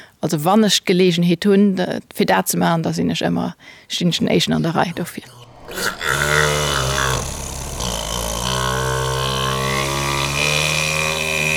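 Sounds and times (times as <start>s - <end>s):
speech: 0.2s - 6.7s
vacuum cleaner played as percussion: 5.2s - 11.5s.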